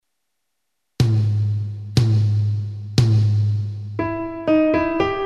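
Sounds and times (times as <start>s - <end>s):
rhythm dictation exercise: 1.0s - 5.1s.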